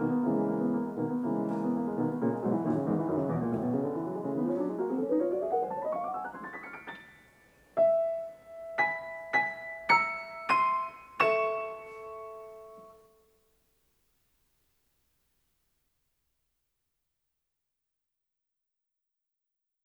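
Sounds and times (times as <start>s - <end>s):
piano piece Allegretto tranquillo: 0.0s - 13.2s.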